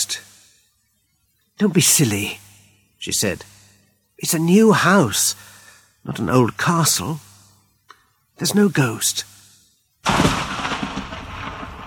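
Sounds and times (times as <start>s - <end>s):
speech: 1.6s - 2.4s, 3.0s - 3.6s, 4.2s - 7.3s, 8.4s - 9.3s
thunder: 10.0s - 11.8s.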